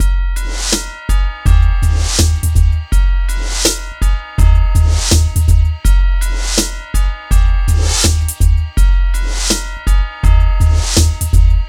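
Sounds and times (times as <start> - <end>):
hip hop and R&B drum loops: 0.0 - 11.6.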